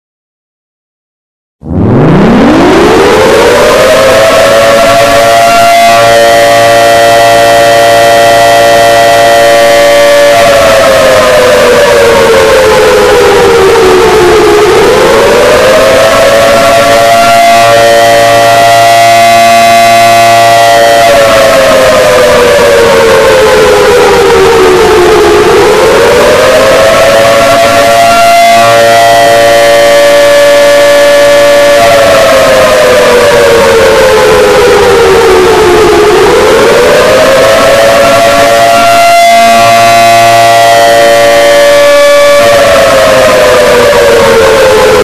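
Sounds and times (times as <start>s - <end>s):
air raid siren: 1.6s - 45.0s.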